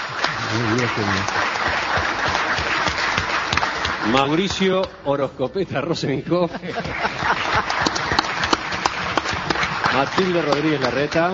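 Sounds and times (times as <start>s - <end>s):
audience clapping welcoming a guest: 0.0s - 5.3s, 6.6s - 11.3s
speech: 0.6s - 1.6s, 4.0s - 8.0s, 10.0s - 11.3s
laughter: 5.1s - 11.3s.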